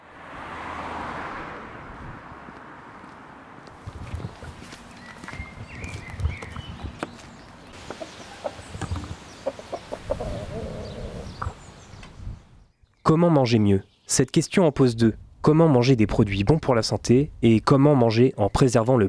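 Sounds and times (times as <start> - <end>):
shuffling footsteps: 1.9 - 12.2
chickens clucking at a farm in the Saint-Pierre district of Brest: 3.7 - 12.4
rooster at a farm in Brest: 7.8 - 11.8
speech: 13.1 - 19.0.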